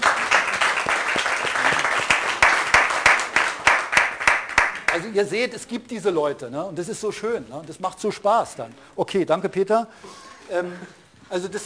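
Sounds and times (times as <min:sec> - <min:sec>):
audience applause: 0:00.0 - 0:05.0
speech: 0:05.1 - 0:11.6.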